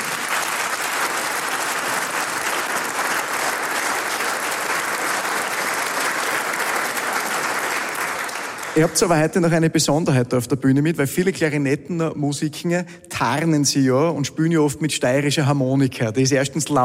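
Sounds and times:
audience applause: 0:00.0 - 0:09.3
speech: 0:08.8 - 0:16.8.

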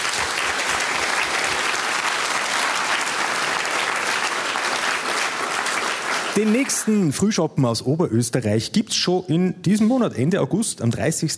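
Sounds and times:
audience applause: 0:00.0 - 0:07.3
speech: 0:06.4 - 0:11.3.

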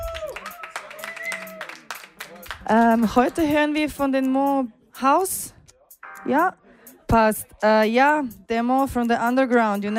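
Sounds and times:
audience applause: 0:00.0 - 0:02.6
speech: 0:02.7 - 0:05.6, 0:06.2 - 0:09.9.

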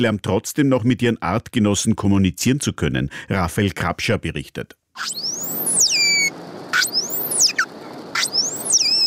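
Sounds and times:
speech: 0:00.0 - 0:05.6
pilot whale calls: 0:05.0 - 0:09.0.

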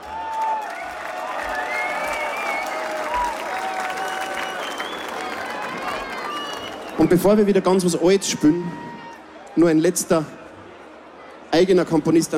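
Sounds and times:
audience applause: 0:00.0 - 0:07.6
speech: 0:07.0 - 0:08.9, 0:09.6 - 0:10.4, 0:11.6 - 0:12.3.

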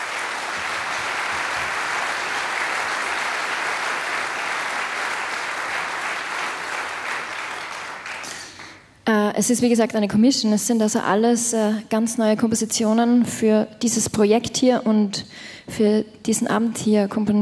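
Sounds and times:
audience applause: 0:00.0 - 0:08.8
speech: 0:09.4 - 0:17.3.

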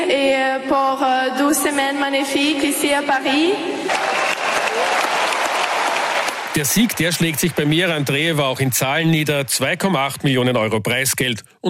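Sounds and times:
speech: 0:00.1 - 0:04.2, 0:06.6 - 0:11.6
large crowd applauding: 0:03.8 - 0:09.5.

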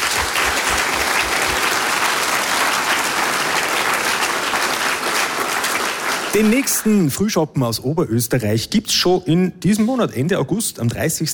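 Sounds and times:
crowd clapping: 0:00.0 - 0:07.2
speech: 0:06.3 - 0:11.3.

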